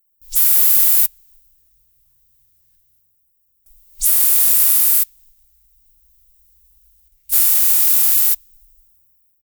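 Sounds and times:
perfume spray: 0.3 - 1.1, 4.0 - 5.1, 7.3 - 8.7.

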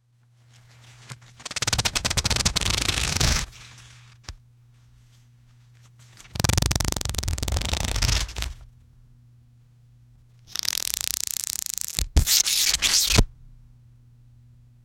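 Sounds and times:
laminated photo album pages flipping: 0.5 - 4.4, 5.8 - 8.6, 11.9 - 13.3.

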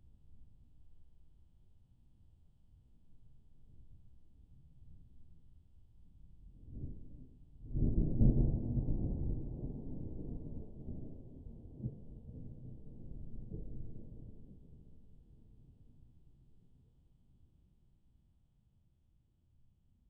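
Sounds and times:
very faraway thunder: 7.8 - 14.7.

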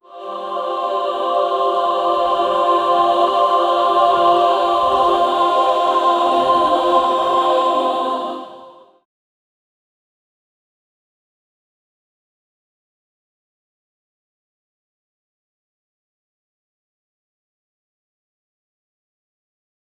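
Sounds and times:
digitally distorted angelic voice: 0.0 - 9.0.

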